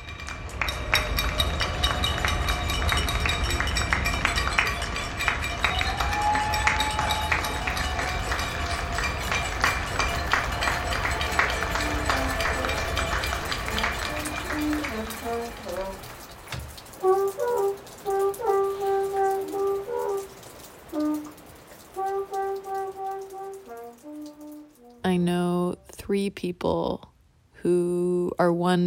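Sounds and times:
nightly cheering and applause for healthcare workers: 0.0 - 24.6
rising whistle: 0.6 - 15.9
short horn-like toots: 1.2 - 16.1, 16.9 - 25.1
speech: 26.3 - 28.8.

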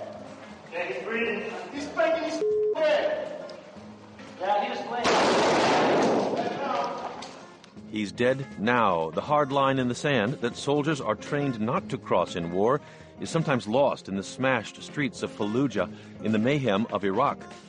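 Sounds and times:
speech: 0.9 - 3.3, 7.9 - 17.6
gunfire burst in a video clip: 5.0 - 6.5.

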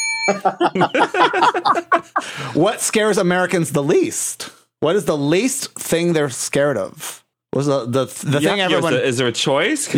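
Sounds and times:
bell ringing: 0.0 - 0.7
laughter: 0.3 - 2.4
speech: 0.3 - 9.9.

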